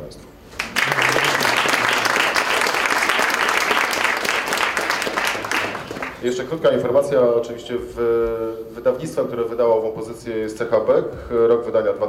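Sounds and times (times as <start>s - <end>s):
speech: 0.1s - 0.3s, 6.2s - 12.0s
audience applauding: 0.5s - 6.3s.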